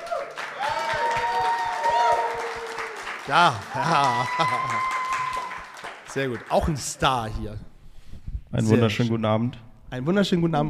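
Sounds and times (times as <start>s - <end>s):
whoops and cheering voices: 0.0s - 5.8s
crowd applauding: 0.0s - 7.2s
laughter: 2.4s - 5.3s
speech: 3.3s - 5.0s, 6.1s - 7.7s, 8.5s - 10.6s.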